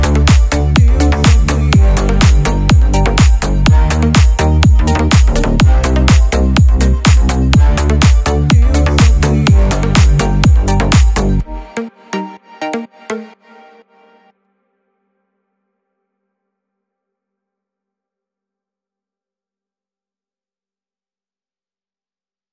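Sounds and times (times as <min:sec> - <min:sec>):
EDM remix: 0:00.0 - 0:14.3.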